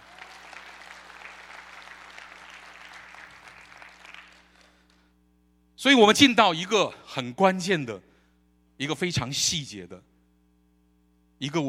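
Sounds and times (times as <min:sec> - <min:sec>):
applause: 0:00.0 - 0:05.1
speech: 0:05.8 - 0:08.1, 0:08.8 - 0:10.1, 0:11.4 - 0:11.6.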